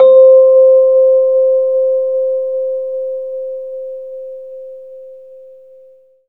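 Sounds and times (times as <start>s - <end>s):
Rhodes electric piano C note: 0.0s - 2.2s.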